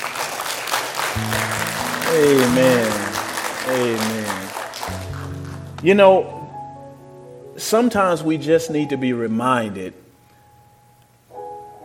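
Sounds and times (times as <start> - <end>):
audience clapping hands in praise: 0.0 - 5.9
speech: 1.2 - 3.0, 3.7 - 4.4, 5.8 - 6.4, 7.6 - 10.0.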